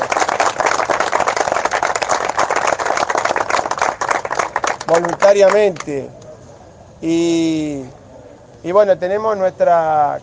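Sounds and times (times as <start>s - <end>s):
audience applause: 0.0s - 5.8s
speech: 4.9s - 6.2s, 7.0s - 8.0s, 8.6s - 10.2s.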